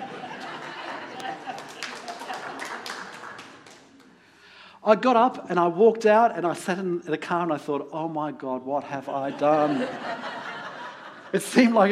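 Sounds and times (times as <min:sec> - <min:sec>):
laughter: 0:00.0 - 0:03.3, 0:09.1 - 0:11.9
scattered audience claps: 0:00.4 - 0:04.2
speech: 0:04.9 - 0:10.4, 0:11.3 - 0:11.9.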